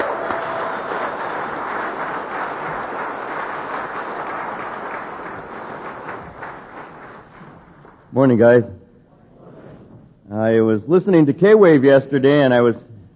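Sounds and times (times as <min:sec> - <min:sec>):
audience applauding: 0:00.0 - 0:08.1
speech: 0:08.2 - 0:08.8, 0:10.8 - 0:12.9.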